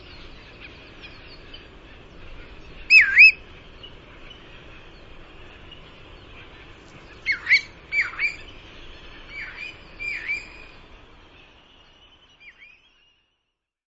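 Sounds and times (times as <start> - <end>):
bristle-thighed curlew Numenius tahitiensis giving wavering whistled phrases: 2.8 - 3.4, 7.2 - 8.6, 9.3 - 10.8.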